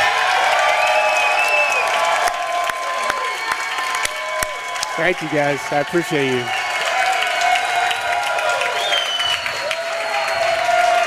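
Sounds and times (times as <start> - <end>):
crowd cheering and applause welcoming the Kansas City Chiefs president: 0.0 - 11.0
bright whistle: 0.8 - 1.8, 8.8 - 11.0
speech: 5.0 - 6.6.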